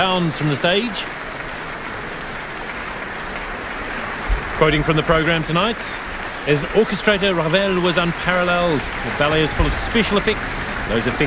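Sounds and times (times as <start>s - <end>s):
speech: 0.0s - 1.3s, 4.6s - 11.2s
concert audience applause at Auckland Town Hall: 0.0s - 11.2s.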